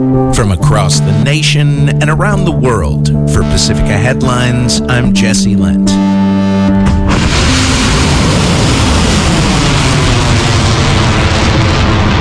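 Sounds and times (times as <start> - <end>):
speech: 0.0 - 6.9
missiles being fired at U.S. bases: 6.8 - 12.1.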